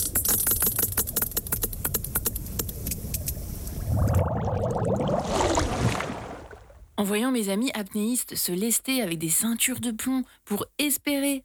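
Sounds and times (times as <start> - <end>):
sperm whale echolocation clicks: 0.0 - 7.0
low rumbling background: 2.7 - 7.0
speech: 7.0 - 11.4.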